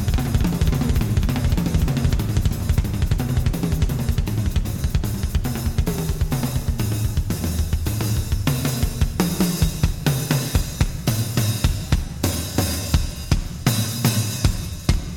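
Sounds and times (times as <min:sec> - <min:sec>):
drum solo: 0:00.0 - 0:15.1.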